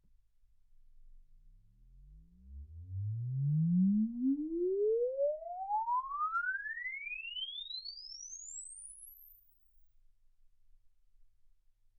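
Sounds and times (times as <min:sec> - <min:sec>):
exponential sine sweep from 10 Hz to 24 kHz: 0:02.0 - 0:09.7.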